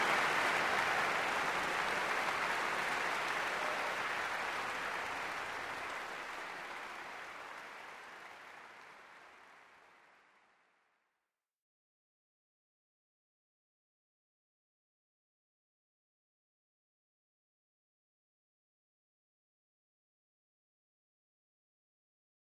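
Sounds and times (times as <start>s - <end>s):
applause: 0.0s - 11.0s.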